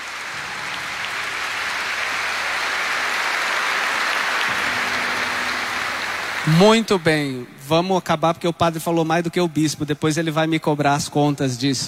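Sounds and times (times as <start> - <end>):
audience applauding pilgrims in church: 0.0 - 7.9
speech: 6.5 - 11.8.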